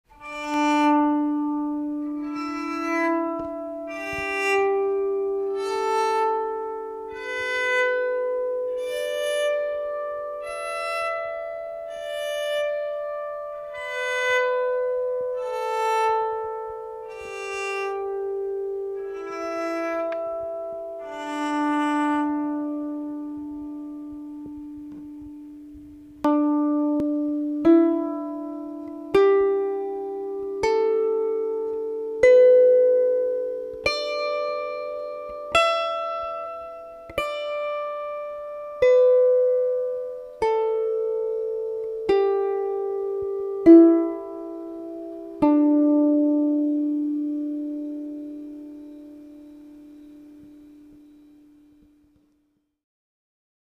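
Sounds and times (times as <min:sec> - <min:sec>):
lyre: 0:00.1 - 0:52.4.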